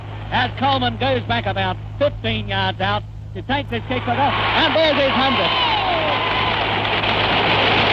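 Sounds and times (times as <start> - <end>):
speech: 0.3 - 5.7
stadium crowd clapping: 4.4 - 7.8.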